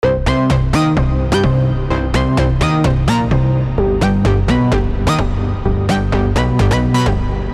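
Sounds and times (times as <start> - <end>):
synth lead: 0.0 - 7.5.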